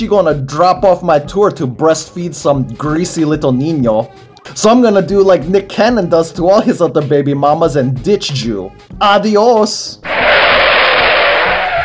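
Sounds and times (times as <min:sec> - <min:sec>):
speech: 0:00.0 - 0:10.2
car tyres skidding off the road: 0:10.1 - 0:11.8.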